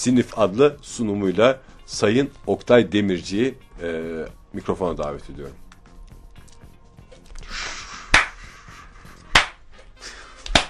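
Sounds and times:
speech: 0:00.0 - 0:05.6
rhythmic clapping: 0:07.3 - 0:10.6.

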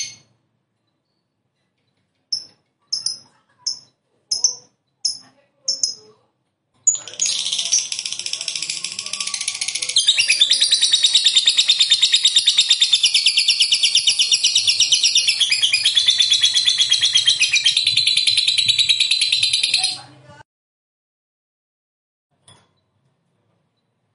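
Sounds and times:
lovebird chattering: 0:02.3 - 0:06.1, 0:06.9 - 0:20.0.

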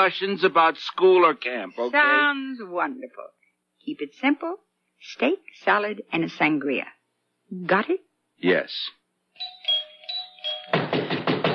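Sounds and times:
speech: 0:00.0 - 0:09.0
pounding on a door: 0:10.8 - 0:11.5.

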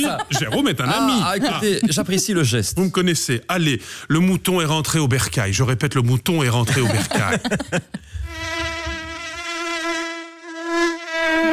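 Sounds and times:
laughter: 0:00.0 - 0:02.5, 0:06.6 - 0:08.2
speech: 0:00.0 - 0:08.1
high whining insect buzz: 0:08.2 - 0:11.5.

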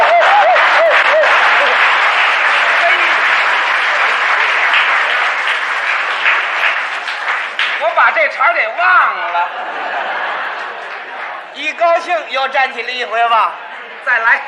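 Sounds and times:
table tennis spectators cheering and applauding: 0:00.0 - 0:12.5
laughter: 0:00.0 - 0:14.4
speech: 0:08.2 - 0:09.6, 0:11.7 - 0:14.4.

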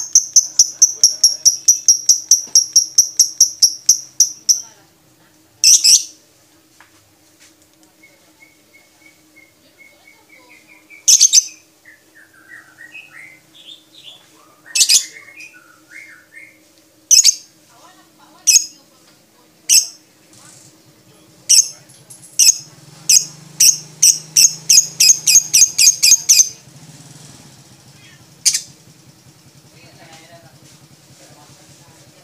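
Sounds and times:
lovebird high chirps and harsh buzzy squawks: 0:00.0 - 0:04.6, 0:05.6 - 0:06.1, 0:08.8 - 0:11.6, 0:14.7 - 0:16.5, 0:17.1 - 0:17.5, 0:19.7 - 0:20.0, 0:22.4 - 0:26.6, 0:28.0 - 0:28.7.

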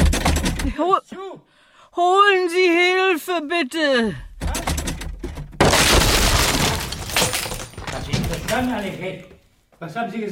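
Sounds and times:
speech: 0:00.8 - 0:04.3, 0:08.0 - 0:10.3
door being kicked in with crashing and splintering: 0:04.4 - 0:09.3.

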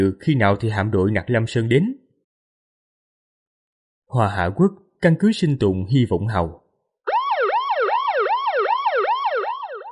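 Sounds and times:
speech: 0:00.0 - 0:02.0, 0:04.1 - 0:06.6
piercing alarm siren blaring through the floors of a survival base: 0:07.1 - 0:09.8.

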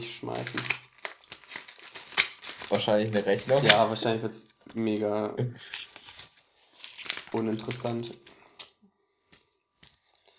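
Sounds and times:
speech: 0:00.0 - 0:00.9, 0:02.7 - 0:05.8, 0:07.3 - 0:08.3
envelope being torn open: 0:00.3 - 0:04.9, 0:05.7 - 0:08.3.

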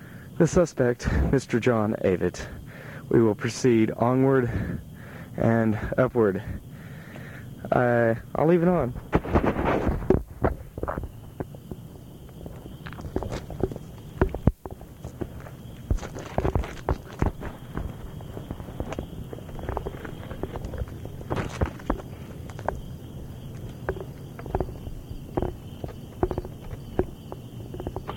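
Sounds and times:
light wind: 0:00.0 - 0:28.1
speech: 0:00.4 - 0:06.7, 0:07.7 - 0:09.4
person climbing a large backyard tree: 0:09.0 - 0:28.1.

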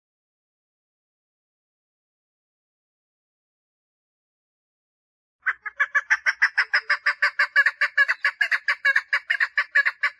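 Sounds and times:
partridge song of raspy notes: 0:05.4 - 0:10.1.

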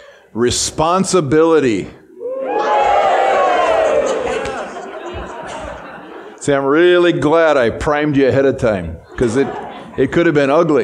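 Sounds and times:
speech: 0:00.4 - 0:02.0, 0:06.4 - 0:10.8
audience cheering and whooping: 0:02.2 - 0:06.2
laughter: 0:02.5 - 0:07.0, 0:09.0 - 0:10.8.

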